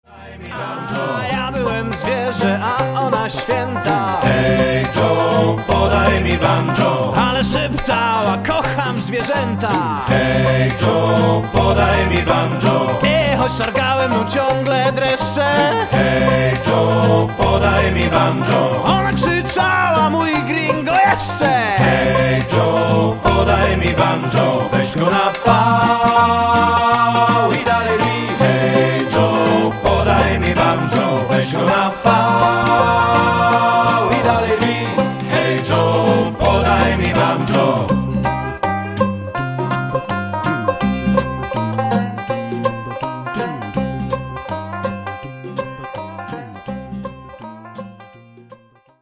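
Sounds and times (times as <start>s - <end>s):
banjo: 0.0s - 49.0s.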